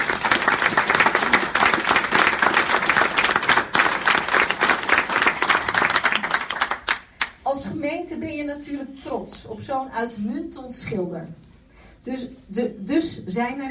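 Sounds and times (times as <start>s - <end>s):
audience applause: 0.0s - 7.3s
speech: 7.8s - 11.4s, 12.0s - 13.6s.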